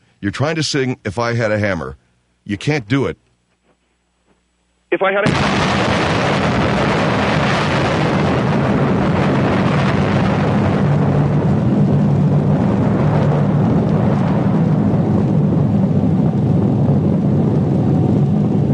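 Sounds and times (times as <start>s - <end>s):
speech: 0.2s - 3.2s, 4.9s - 6.6s
bombs exploding: 5.2s - 18.7s.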